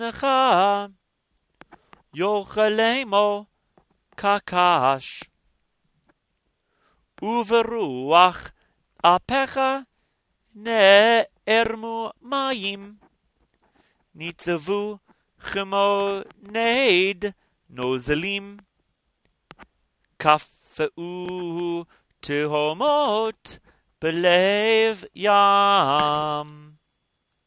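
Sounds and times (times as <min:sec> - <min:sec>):
Torah portion chanting: 0:00.0 - 0:01.0, 0:02.2 - 0:03.5, 0:04.1 - 0:05.4, 0:07.2 - 0:09.9, 0:10.5 - 0:13.1, 0:14.2 - 0:18.7, 0:20.2 - 0:26.8.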